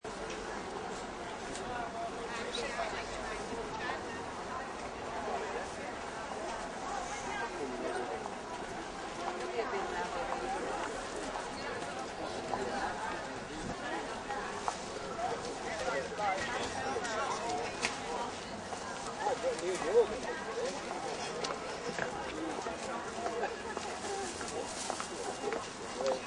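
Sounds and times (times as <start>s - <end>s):
small outdoor market crowd with light pedestrian traffic: 0.0s - 26.2s.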